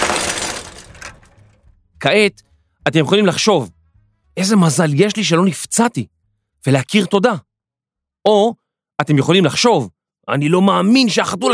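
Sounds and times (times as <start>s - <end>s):
crash of someone falling off a bicycle: 0.0s - 1.6s
speech: 2.0s - 3.8s, 4.4s - 7.5s, 8.2s - 11.5s.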